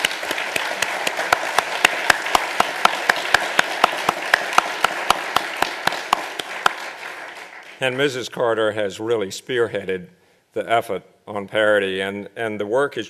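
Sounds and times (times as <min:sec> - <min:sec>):
audience applause: 0:00.0 - 0:08.2
speech: 0:07.8 - 0:13.0.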